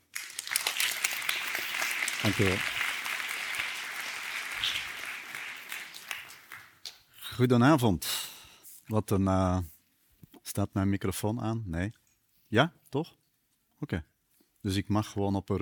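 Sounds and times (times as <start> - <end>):
audience applause: 0.0 - 6.8
speech: 2.2 - 2.7, 7.4 - 8.1, 8.9 - 9.7, 10.6 - 13.2, 13.8 - 15.6.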